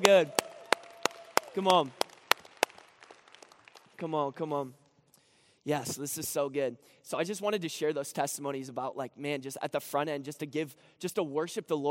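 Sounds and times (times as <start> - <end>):
speech: 0.0 - 0.4, 1.6 - 2.0, 4.0 - 4.8, 5.6 - 11.8
audience hand clapping: 0.0 - 4.7.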